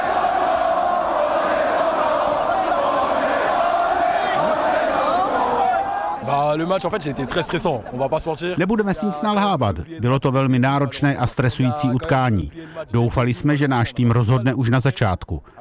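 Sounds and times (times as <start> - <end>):
crowd cheering and chanting in street on Champs-Élysées: 0.0 - 6.4
speech: 6.6 - 15.5.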